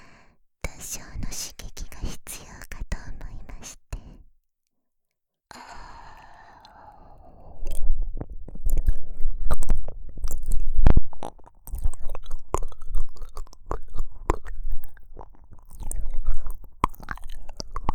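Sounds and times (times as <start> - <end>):
ASMR ear licking on a binaural microphone: 5.6 - 17.9.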